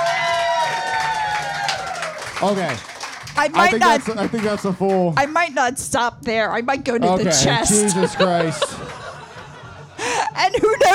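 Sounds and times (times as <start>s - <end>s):
voices cheering: 0.0s - 2.4s, 3.4s - 4.1s
audience clapping: 0.0s - 5.4s
speech: 2.4s - 9.0s
laughter: 7.4s - 10.9s.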